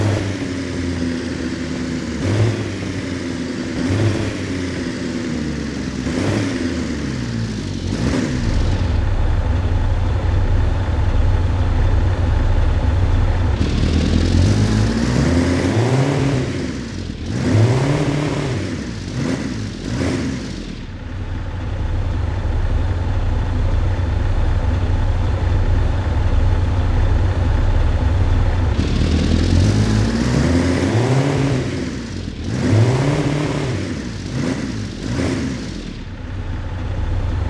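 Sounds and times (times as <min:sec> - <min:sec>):
vehicles throttling off: 0:00.0 - 0:37.4.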